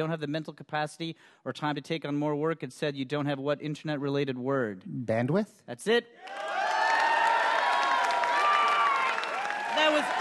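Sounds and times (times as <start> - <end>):
speech: 0.0 - 6.6
audience applause: 6.2 - 10.1.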